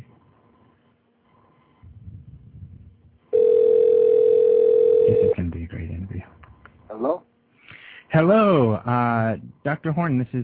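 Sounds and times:
telephone being dialed: 3.4 - 5.4
speech: 7.0 - 7.3, 8.2 - 10.4.

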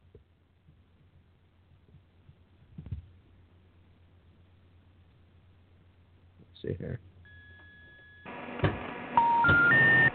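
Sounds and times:
speech: 6.6 - 7.1
three steady electronic telephone tones stepping upward in pitch: 7.2 - 8.4, 9.2 - 10.1
faint telephone line noise on an outgoing call: 7.3 - 10.1.

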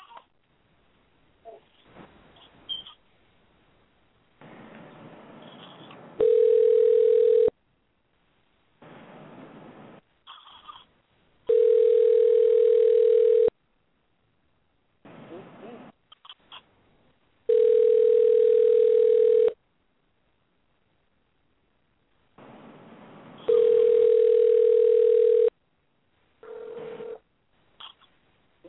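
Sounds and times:
telephone ringing tone on call line: 6.2 - 7.5, 11.5 - 13.5, 17.5 - 19.6, 23.4 - 25.5.

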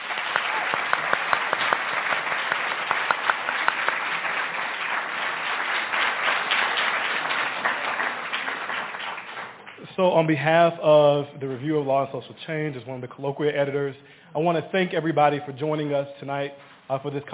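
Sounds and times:
audience applause: 0.0 - 9.8
speech: 10.0 - 17.3.

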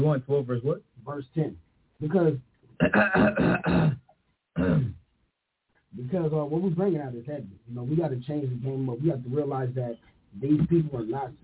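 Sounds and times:
speech: 0.0 - 4.0, 4.6 - 5.0, 5.9 - 11.4
person clearing throat: 2.8 - 5.0.

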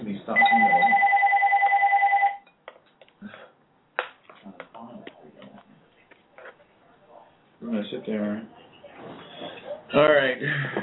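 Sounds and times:
phone ringing: 0.4 - 2.5
speech: 8.0 - 8.6, 9.9 - 10.8.

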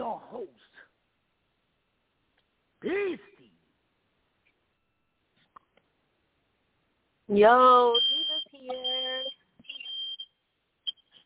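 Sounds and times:
speech: 2.8 - 3.3, 7.3 - 8.2
fire alarm shrill electronic tone in short bursts: 7.8 - 11.2.

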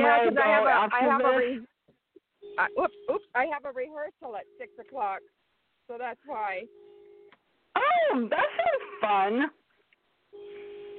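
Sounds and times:
speech: 0.2 - 1.7, 2.6 - 6.8, 7.8 - 9.6
phone alarm going off: 2.4 - 3.5, 4.2 - 5.3, 6.4 - 7.4, 10.3 - 10.9.

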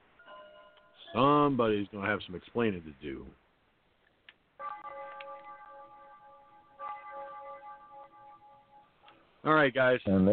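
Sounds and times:
ding-dong chime: 0.2 - 1.3, 4.6 - 9.0
speech: 1.1 - 3.4, 9.4 - 10.3.

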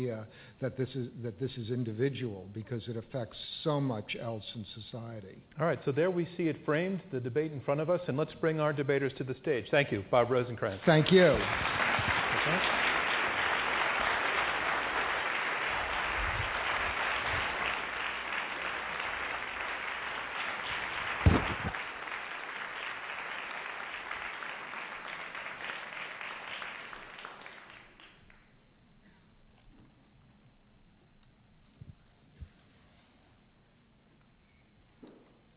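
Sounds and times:
speech: 0.0 - 12.8
audience applause: 10.9 - 28.4.

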